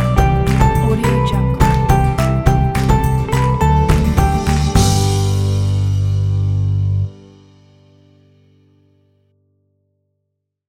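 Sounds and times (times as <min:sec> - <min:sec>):
happy bright driving indie folk music: 0:00.0 - 0:07.2.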